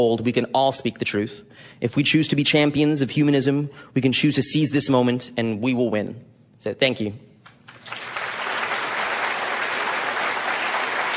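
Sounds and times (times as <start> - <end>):
speech: 0.0 - 7.3
audience applause: 7.7 - 11.1.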